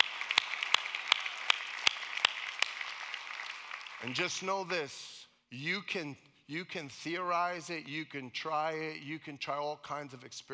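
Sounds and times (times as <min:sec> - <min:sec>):
audience clapping in a steady even rhythm: 0:00.0 - 0:05.0
speech: 0:04.0 - 0:10.5.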